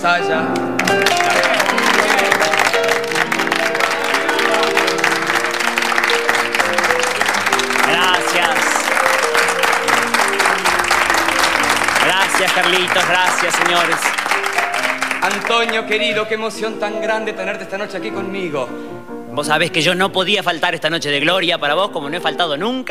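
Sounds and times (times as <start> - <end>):
speech: 0.0 - 2.7, 12.4 - 14.2, 15.2 - 22.8
audience applause: 0.7 - 16.0.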